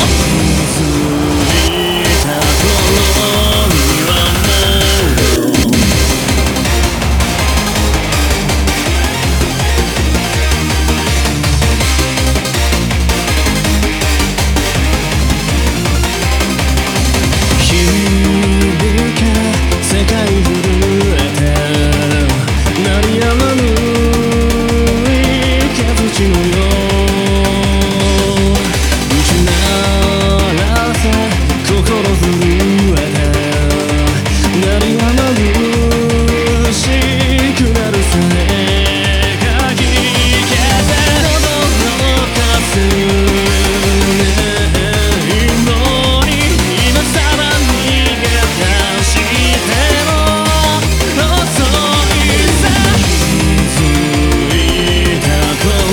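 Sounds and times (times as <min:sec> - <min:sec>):
Eurobeat beat: 0:00.0 - 0:55.9.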